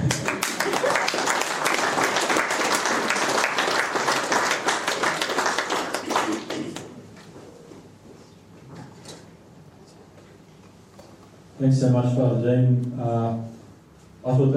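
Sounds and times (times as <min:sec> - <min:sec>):
audience applause: 0:00.0 - 0:07.0
speech: 0:11.6 - 0:13.5, 0:14.2 - 0:14.5.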